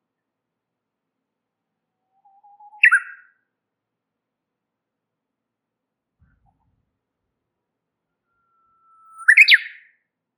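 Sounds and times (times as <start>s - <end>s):
warbler chirping and twittering: 2.7s - 3.2s, 8.6s - 9.8s.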